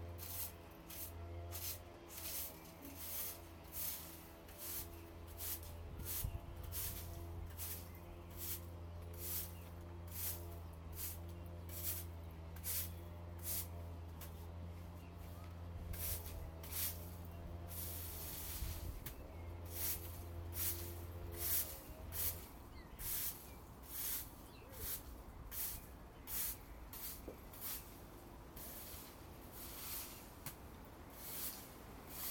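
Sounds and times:
brushing in a garden: 0.0s - 14.6s, 15.9s - 32.3s
garden raking: 0.0s - 32.3s.

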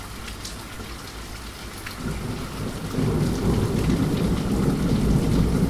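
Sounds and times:
thunderstorm: 2.0s - 5.6s.

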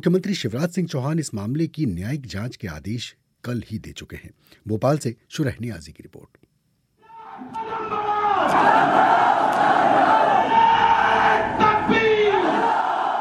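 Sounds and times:
speech: 0.0s - 6.4s
angry crowd shouting inside a mosque: 7.0s - 13.1s.

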